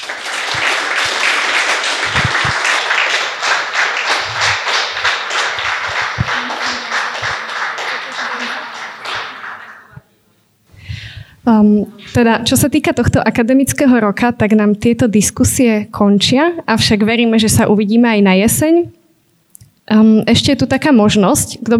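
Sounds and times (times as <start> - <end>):
audience applause: 0.0 - 10.0
speech: 11.6 - 19.0, 19.9 - 21.7.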